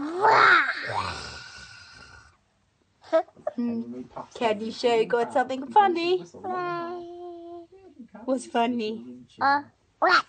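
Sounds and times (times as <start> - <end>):
child imitating a tiger's roar: 0.0 - 1.4
speech: 3.6 - 7.0, 8.3 - 10.2.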